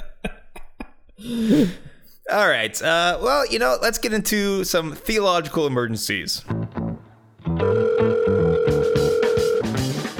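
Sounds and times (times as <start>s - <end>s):
speech: 1.2s - 6.6s
electronic telephone tone signalling an incoming call: 7.6s - 9.8s.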